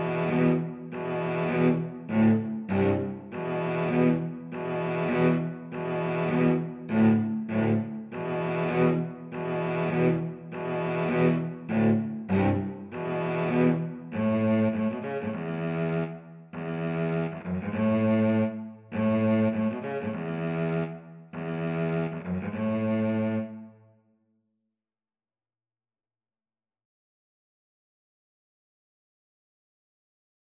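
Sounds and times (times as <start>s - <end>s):
viola and cello duet: 0.0s - 23.8s.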